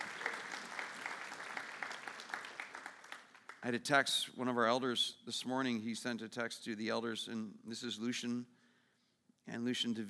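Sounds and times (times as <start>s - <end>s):
audience clapping: 0.0s - 3.8s
speech: 3.6s - 8.6s, 9.5s - 10.0s.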